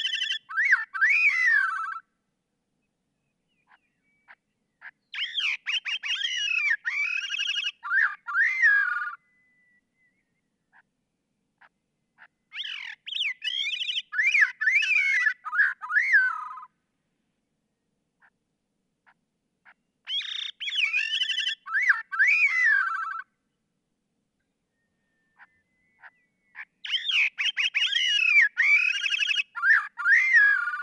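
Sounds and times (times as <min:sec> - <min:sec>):
Gray-cheeked Thrush calling: 0:00.0 - 0:02.0, 0:03.7 - 0:09.2, 0:11.6 - 0:16.7, 0:19.0 - 0:23.3, 0:25.4 - 0:30.8.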